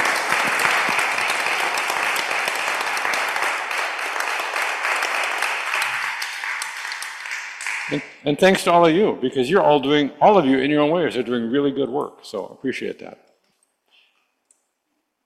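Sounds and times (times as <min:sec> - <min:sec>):
audience round of applause: 0:00.0 - 0:08.0
speech: 0:07.9 - 0:13.2.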